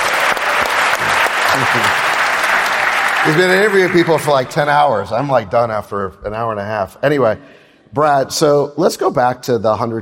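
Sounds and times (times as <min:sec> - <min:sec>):
round of applause: 0:00.0 - 0:05.0
speech: 0:01.6 - 0:02.1, 0:03.2 - 0:10.0.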